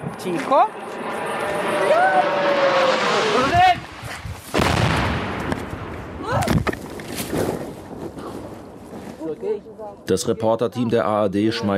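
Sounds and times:
hissing engine of approaching Russian drone: 0.0 - 4.1
speech: 0.2 - 2.8, 9.2 - 11.7
sharp loud bursts: 1.0 - 6.3
voices shouting: 1.4 - 3.7.

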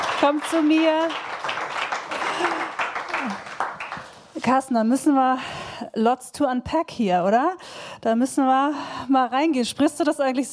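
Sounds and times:
audience applause at a stage event: 0.0 - 4.2
speech: 0.2 - 1.3, 4.4 - 10.5.

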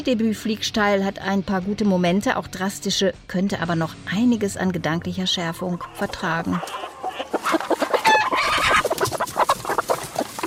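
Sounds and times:
speech: 0.0 - 7.7
hen clucking: 5.6 - 10.4.

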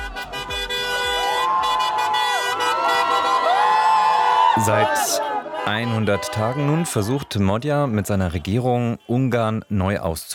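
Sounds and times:
crowd cheering in Budapest after election victory: 0.0 - 9.8
speech: 4.6 - 10.3.

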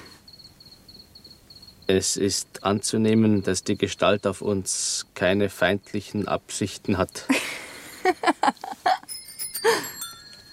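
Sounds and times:
speech: 1.9 - 7.5
bicycle bells ringing: 8.9 - 10.5.

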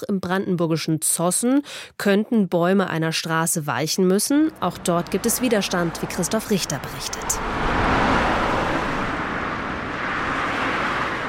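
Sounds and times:
speech: 0.0 - 7.8
trucks rumbling along the Stubenrauchstraße in Zossen, Brandenburg: 4.4 - 11.2.

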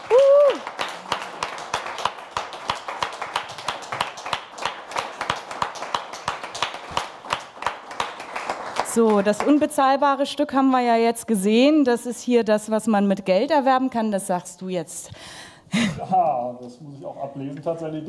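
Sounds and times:
audience applause: 0.0 - 9.7
speech: 9.0 - 18.0.

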